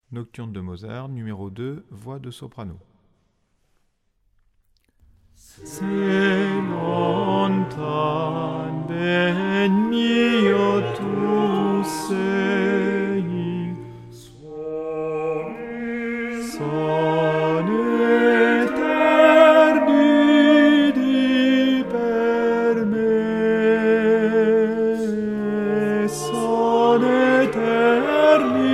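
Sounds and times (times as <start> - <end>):
soprano singing: 5.4 - 28.7.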